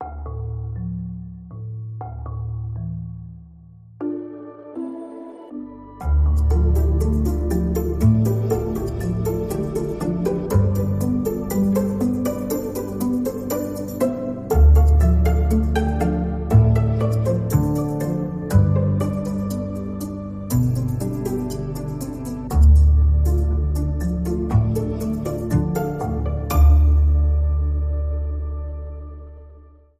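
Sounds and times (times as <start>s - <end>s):
pizzicato underscore music: 0.0s - 29.9s.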